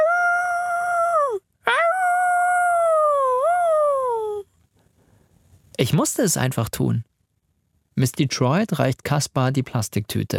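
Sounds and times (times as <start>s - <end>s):
man howling like a wolf: 0.0s - 4.4s
speech: 5.8s - 7.1s, 8.0s - 10.3s.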